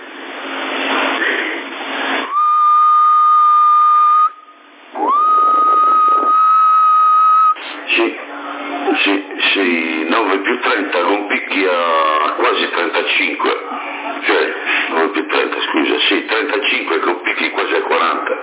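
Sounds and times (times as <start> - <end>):
CB radio hiss and crackle: 0.0 - 2.3, 4.7 - 6.6, 7.6 - 18.4
person whistling into a CRT 9009 CB radio transmitting in AM: 2.2 - 7.8.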